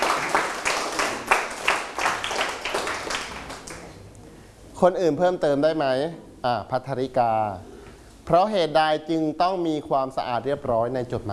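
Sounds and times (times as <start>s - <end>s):
classroom group clapping for a student: 0.0s - 4.1s
speech: 4.8s - 7.7s, 8.3s - 11.3s.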